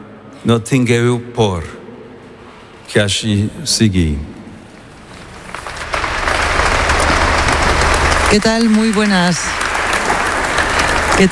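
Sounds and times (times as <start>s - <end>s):
speech: 0.4s - 1.8s, 2.9s - 4.3s, 8.3s - 9.6s
crowd applauding a speech: 5.2s - 11.2s.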